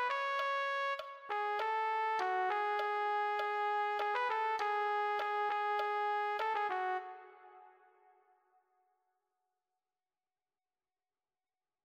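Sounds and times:
trumpet: 0:00.0 - 0:08.2.

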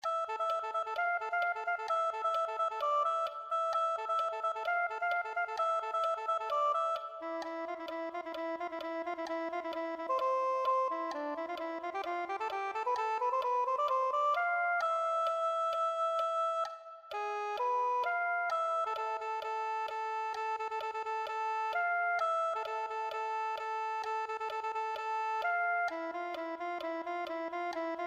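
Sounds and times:
soprano saxophone: 0:00.0 - 0:28.0.

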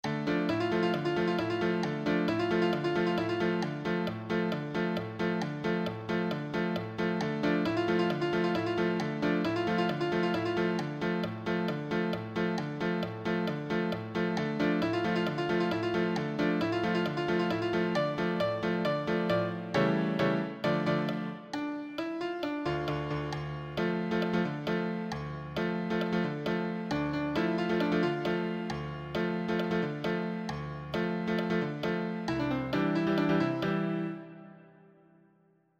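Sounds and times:
solo piano: 0:00.0 - 0:35.2.

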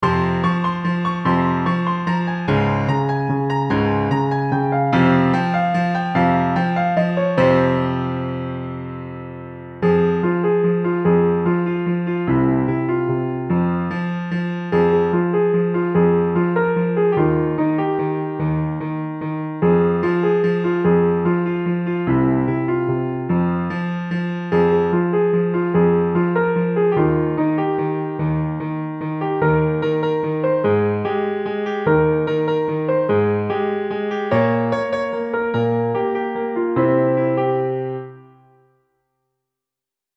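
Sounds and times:
piano solo: 0:00.0 - 0:38.8.

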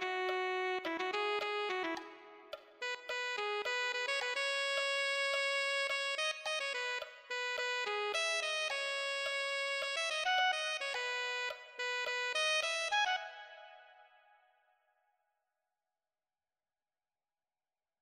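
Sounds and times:
alto saxophone: 0:00.0 - 0:14.2.

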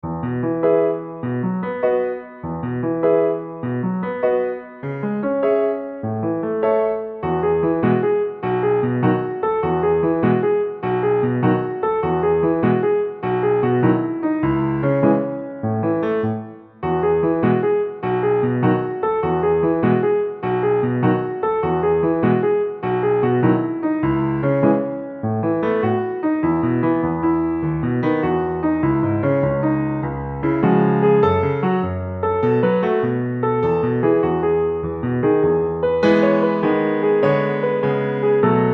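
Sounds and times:
solo piano: 0:00.0 - 0:38.7.

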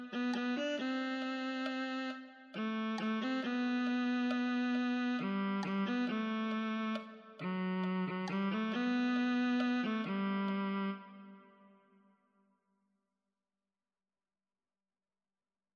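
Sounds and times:
viola: 0:00.0 - 0:11.8.

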